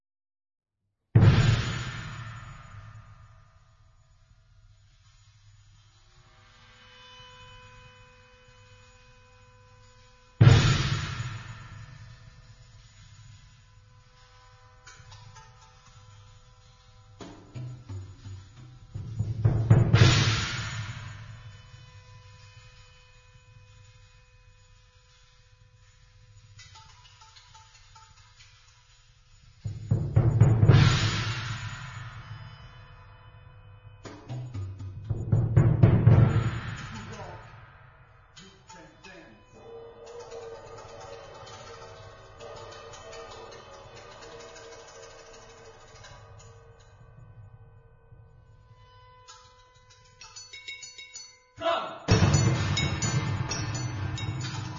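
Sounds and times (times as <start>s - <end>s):
drumming: 1.2s - 3.2s, 10.4s - 16.0s, 17.0s - 22.6s, 26.3s - 33.0s, 34.0s - 39.4s, 40.0s - 47.0s, 51.7s - 54.7s.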